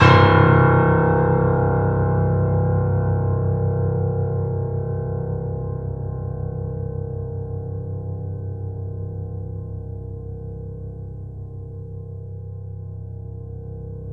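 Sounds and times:
sustained piano: 0.0s - 14.1s.

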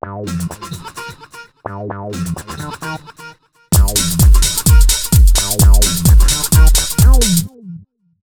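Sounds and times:
fresh disco house music: 3.8s - 7.5s.

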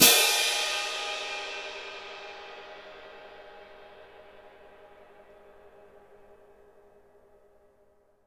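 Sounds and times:
orchestral cymbal: 0.0s - 5.9s.

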